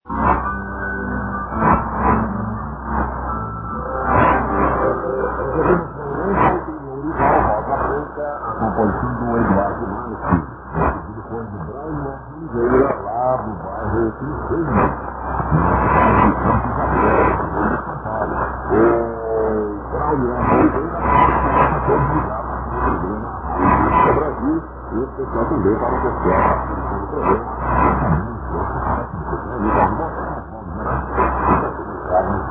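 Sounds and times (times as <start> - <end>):
shortwave radio at 9615 kHz: 0.1 - 32.4.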